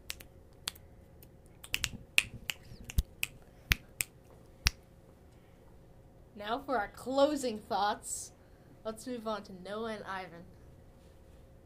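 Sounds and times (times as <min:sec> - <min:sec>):
finger snaps: 0:00.0 - 0:04.8
speech: 0:06.4 - 0:10.6.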